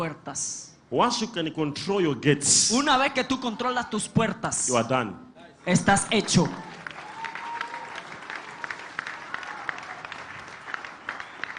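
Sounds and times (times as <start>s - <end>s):
speech: 0.0s - 6.8s
audience clapping: 5.9s - 11.5s.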